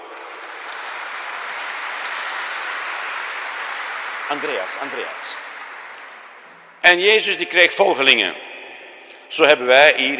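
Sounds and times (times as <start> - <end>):
audience applause: 0.0 - 6.8
speech: 4.3 - 5.5, 6.8 - 8.5, 9.3 - 10.1.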